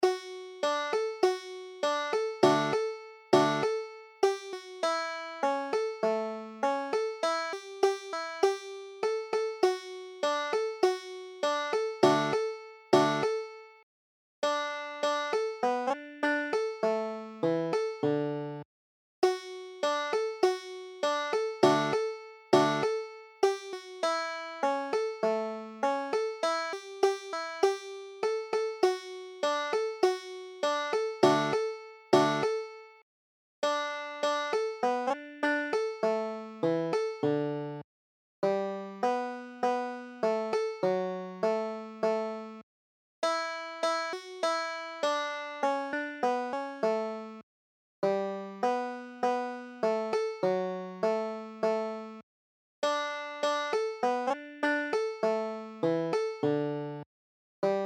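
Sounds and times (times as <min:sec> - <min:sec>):
banjo: 0:00.0 - 0:13.7, 0:14.4 - 0:18.6, 0:19.2 - 0:32.9, 0:33.6 - 0:37.8, 0:38.4 - 0:42.6, 0:43.2 - 0:47.4, 0:48.0 - 0:52.2, 0:52.8 - 0:57.0, 0:57.6 - 0:57.8.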